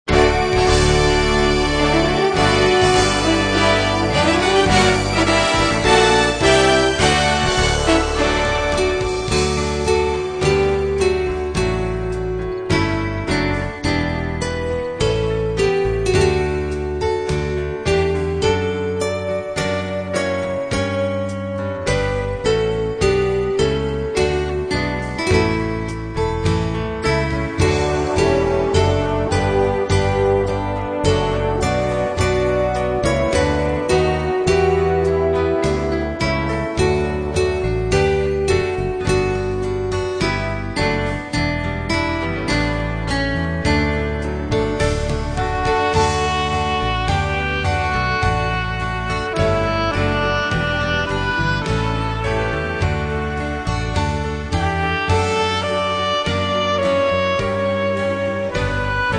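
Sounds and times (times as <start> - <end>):
instrumental hymns: 0.0 - 59.1.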